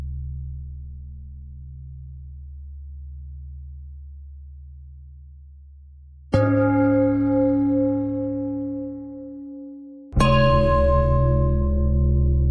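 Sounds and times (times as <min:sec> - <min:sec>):
bells ringing: 0:06.4 - 0:12.4.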